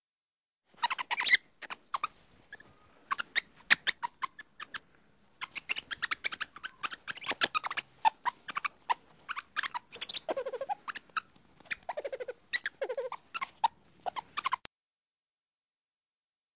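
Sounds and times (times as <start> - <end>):
lemur chirping: 0.8 - 4.8, 5.4 - 14.6.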